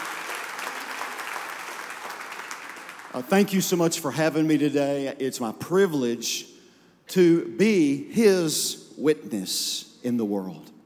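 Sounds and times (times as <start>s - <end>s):
audience applause, hand clapping: 0.0s - 3.8s
speech: 3.1s - 10.8s.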